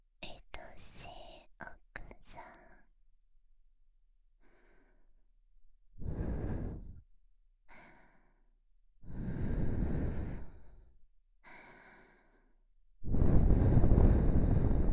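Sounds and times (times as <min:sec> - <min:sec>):
whispering: 0:00.2 - 0:02.9
breathing: 0:04.4 - 0:05.2, 0:06.0 - 0:07.0, 0:07.7 - 0:14.9.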